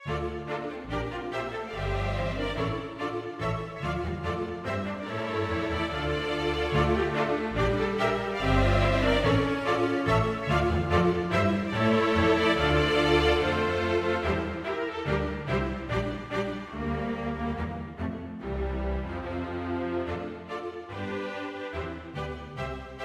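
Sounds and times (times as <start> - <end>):
string quintet playing an air: 0.0 - 23.0.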